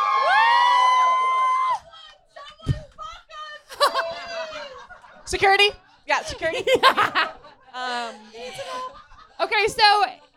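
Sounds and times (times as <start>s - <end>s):
comedy-show audience cheering with whoops and shouts: 0.0s - 1.9s
laughter: 3.7s - 10.3s
speech: 5.3s - 10.2s.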